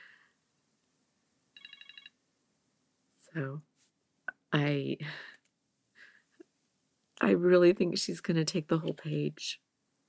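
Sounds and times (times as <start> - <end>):
timer alarm ringing: 1.6 - 2.2
speech: 3.3 - 3.7, 4.5 - 5.3, 7.2 - 9.6.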